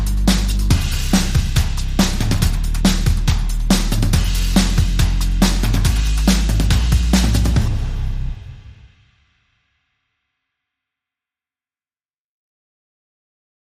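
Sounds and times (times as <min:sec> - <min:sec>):
bass: 0:00.0 - 0:08.9
drums: 0:00.0 - 0:10.0.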